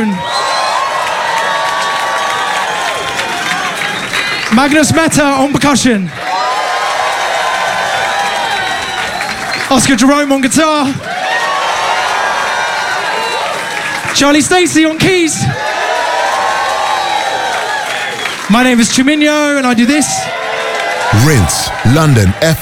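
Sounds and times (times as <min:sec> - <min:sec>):
speech: 0:00.0 - 0:00.4, 0:04.6 - 0:06.2, 0:09.7 - 0:11.1, 0:14.1 - 0:15.7, 0:18.5 - 0:20.4, 0:21.1 - 0:22.6
live audience cheering for band members: 0:00.0 - 0:04.9, 0:06.2 - 0:09.7, 0:11.0 - 0:14.1, 0:15.6 - 0:18.3, 0:20.2 - 0:22.6.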